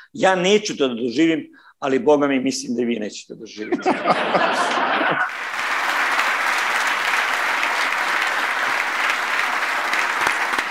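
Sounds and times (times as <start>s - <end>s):
speech: 0.0s - 5.6s
laughter: 3.6s - 10.6s
audience applause: 4.2s - 10.6s.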